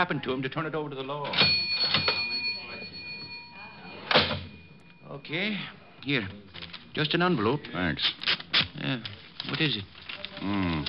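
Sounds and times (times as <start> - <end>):
speech: 0.0 - 2.1, 5.1 - 10.8
cash register drawer opening: 1.2 - 4.7.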